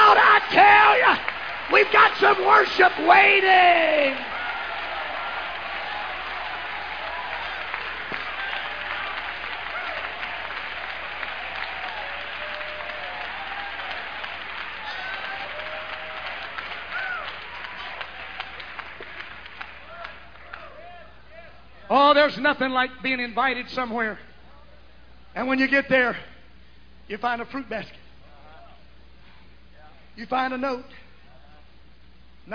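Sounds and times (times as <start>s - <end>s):
audience hand clapping: 0.0s - 20.8s
speech: 1.8s - 4.3s, 22.2s - 24.3s, 25.4s - 26.3s, 27.1s - 28.0s, 30.2s - 31.0s.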